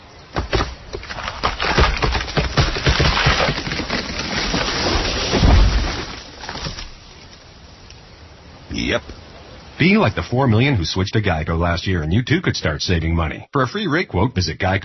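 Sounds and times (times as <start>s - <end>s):
tree splintering with sharp wooden cracks in a forest: 0.3s - 8.0s
speech: 9.8s - 14.8s.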